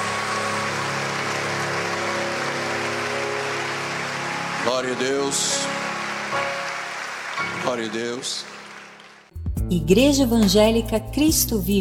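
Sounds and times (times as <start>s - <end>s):
audience applause: 0.0s - 9.3s
speech: 4.6s - 6.5s, 7.6s - 8.6s, 9.7s - 11.8s.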